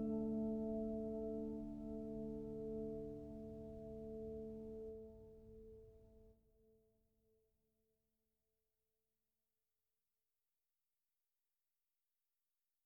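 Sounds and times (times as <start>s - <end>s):
solo piano: 0.0s - 5.3s.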